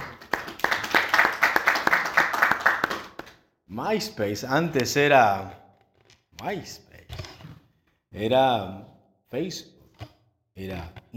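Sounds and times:
audience clapping: 0.0s - 3.5s
speech: 3.8s - 5.6s, 6.4s - 6.9s, 8.2s - 9.7s, 10.6s - 11.1s.

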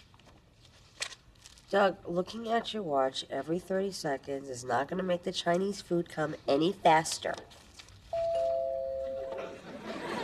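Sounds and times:
speech: 1.7s - 7.6s
two-tone ding-dong doorbell: 8.2s - 9.6s
laughter: 9.3s - 10.2s.

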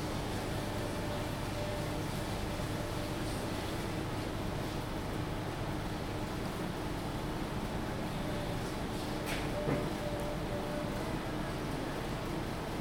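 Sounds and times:
ventilation humming in Costa: 0.0s - 12.8s.

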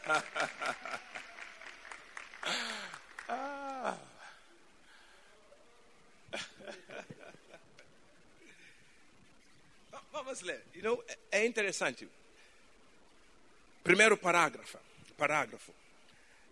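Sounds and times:
speech: 0.0s - 0.9s, 10.4s - 12.2s, 13.9s - 15.8s
laughter: 0.0s - 1.6s, 6.4s - 7.9s
audience applause: 0.0s - 4.1s.

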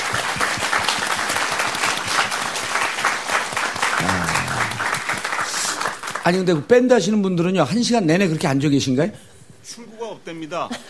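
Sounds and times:
audience applause: 0.0s - 6.5s
speech: 6.3s - 10.8s.

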